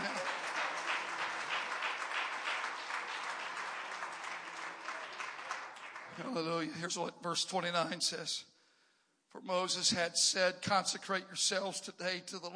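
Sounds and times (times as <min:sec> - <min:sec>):
audience clapping: 0:00.0 - 0:06.9
speech: 0:06.2 - 0:08.5, 0:09.3 - 0:12.5.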